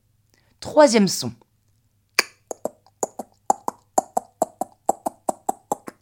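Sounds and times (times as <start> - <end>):
speech: 0.6 - 1.4
horse hoofbeats clip-clopping at a trot: 2.5 - 6.0.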